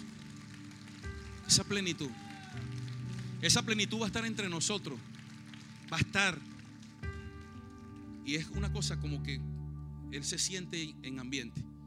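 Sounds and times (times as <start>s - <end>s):
audience applause: 0.0s - 7.9s
speech: 1.5s - 2.8s, 3.4s - 5.2s, 5.9s - 6.5s, 8.2s - 9.5s, 10.1s - 11.7s.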